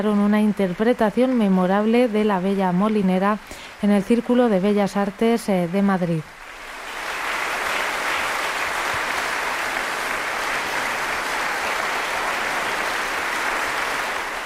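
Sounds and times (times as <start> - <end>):
speech: 0.0 - 6.4
concert audience applause: 6.3 - 14.4.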